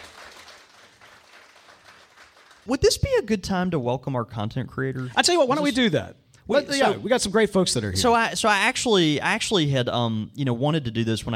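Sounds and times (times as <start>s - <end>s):
audience applause: 0.0s - 2.8s
speech: 2.6s - 11.3s.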